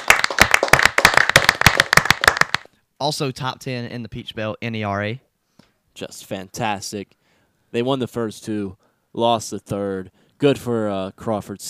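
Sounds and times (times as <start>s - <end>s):
hand clapping: 0.0s - 2.7s
speech: 3.0s - 5.3s, 6.0s - 11.6s.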